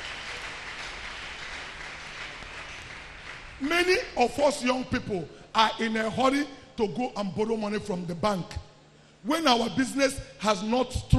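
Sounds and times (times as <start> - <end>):
audience clapping hands: 0.0 - 4.1
speech: 3.6 - 11.1.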